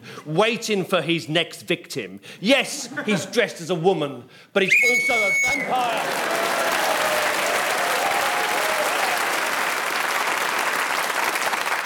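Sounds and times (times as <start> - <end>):
speech: 0.2 - 6.8
studio audience applause: 5.5 - 11.8.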